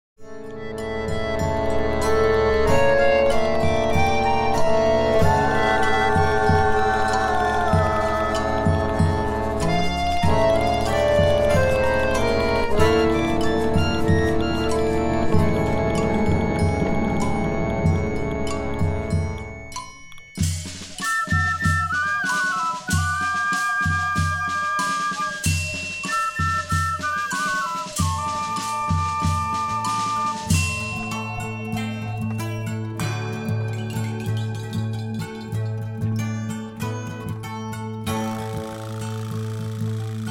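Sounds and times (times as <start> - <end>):
orchestra: 0.3 - 40.2.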